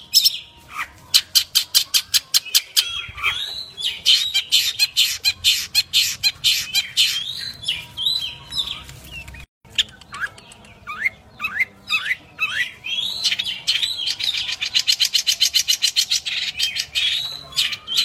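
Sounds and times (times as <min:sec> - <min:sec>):
long-tailed shrike chattering song of high chirps and squawky notes: 0:00.2 - 0:18.0.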